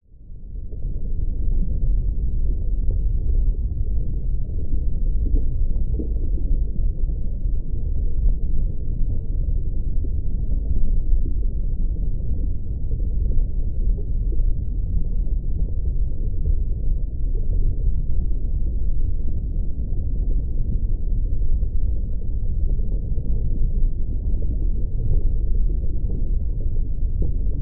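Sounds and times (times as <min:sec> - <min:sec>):
deep underwater nature ambience: 0:00.0 - 0:27.5.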